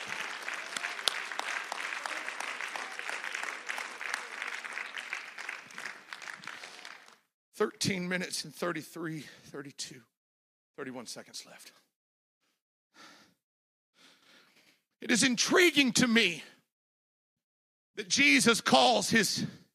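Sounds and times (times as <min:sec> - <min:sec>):
audience clapping hands: 0:00.0 - 0:07.3
speech: 0:07.6 - 0:10.1, 0:10.8 - 0:11.9, 0:15.0 - 0:16.5, 0:18.0 - 0:19.6.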